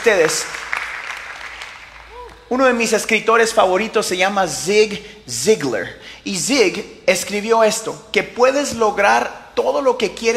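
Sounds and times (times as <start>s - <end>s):
speech: 0.0s - 0.8s, 2.5s - 10.3s
audience applause: 0.0s - 2.3s.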